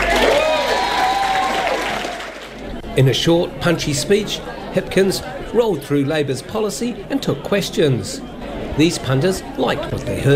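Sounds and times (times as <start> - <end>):
standing ovation applause for Chris Hipkins in New Plymouth: 0.0 - 2.6
crowd cheering for Chris Hipkins in New Plymouth: 0.0 - 2.8
speech: 3.0 - 10.3.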